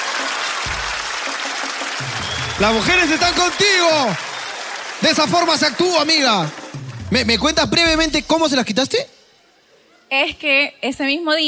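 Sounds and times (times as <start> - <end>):
applause: 0.0 - 8.3
speech: 2.6 - 4.3, 5.0 - 9.2, 10.1 - 11.4.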